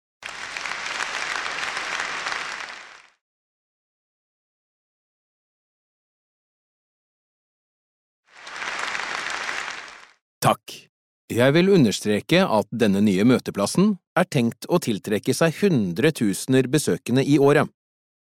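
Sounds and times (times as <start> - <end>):
enthusiastic audience applause: 0.2 - 3.2, 8.3 - 10.2
speech: 10.4 - 17.8.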